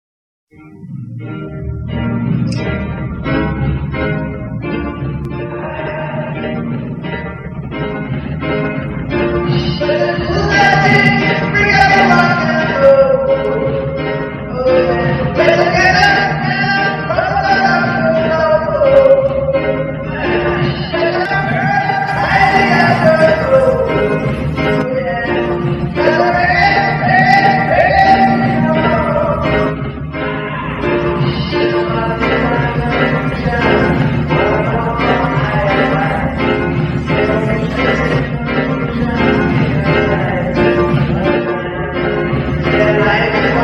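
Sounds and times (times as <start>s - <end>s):
reggae song: 0.5s - 43.6s.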